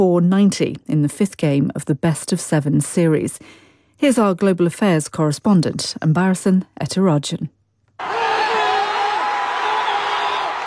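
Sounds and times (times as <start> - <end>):
speech: 0.0 - 8.2
New York Knicks supporters clapping and cheering: 8.0 - 10.6.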